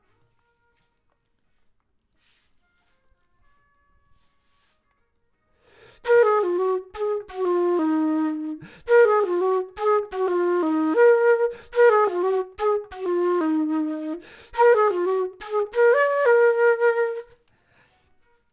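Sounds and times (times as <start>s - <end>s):
flute: 5.8s - 17.5s.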